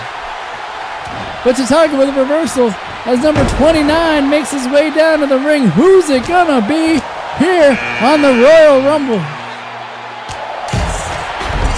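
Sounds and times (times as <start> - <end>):
arena crowd cheering: 0.0 - 11.7
speech: 1.4 - 9.4.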